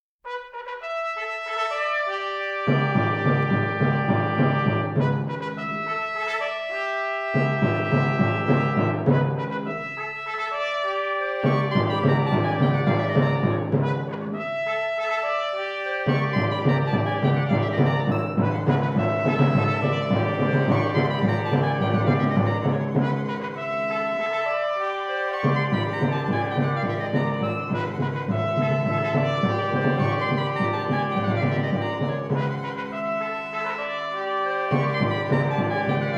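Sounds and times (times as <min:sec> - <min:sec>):
menacing fanfare: 0:00.3 - 0:36.1.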